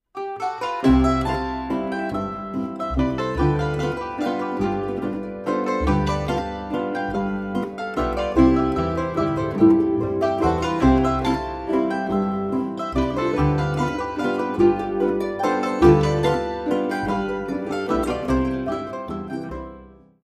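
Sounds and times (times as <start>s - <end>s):
string quintet playing: 0.2s - 20.1s.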